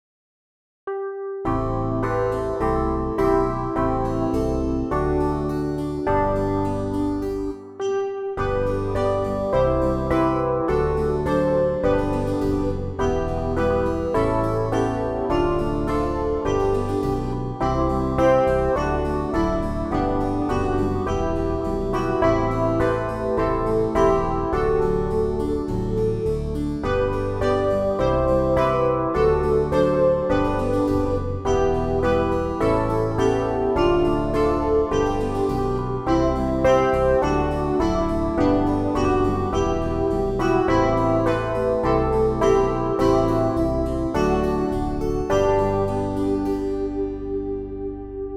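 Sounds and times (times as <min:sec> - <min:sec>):
instrumental music: 0:00.9 - 0:48.3.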